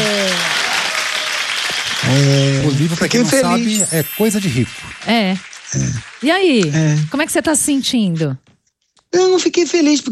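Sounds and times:
applause: 0:00.0 - 0:07.9
speech: 0:02.1 - 0:08.5, 0:09.1 - 0:10.1.

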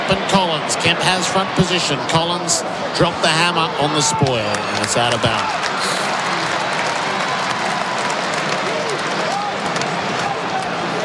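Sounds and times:
speech: 0:00.1 - 0:06.2
stadium crowd clapping along: 0:04.1 - 0:10.9.

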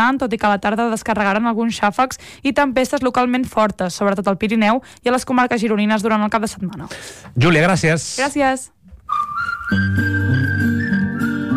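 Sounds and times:
speech: 0:00.0 - 0:10.2
whistles: 0:09.1 - 0:11.5.

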